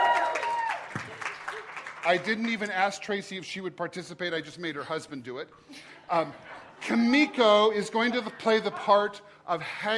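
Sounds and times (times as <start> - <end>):
crowd applause: 0.0 - 2.6
speech: 2.0 - 9.9.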